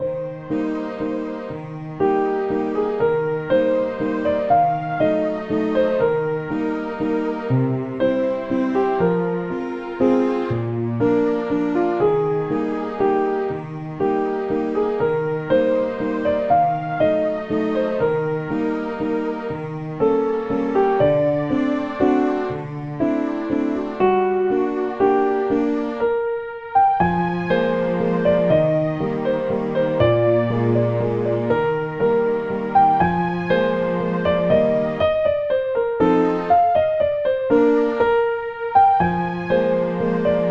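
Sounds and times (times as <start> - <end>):
waltz music: 0.0 - 40.5.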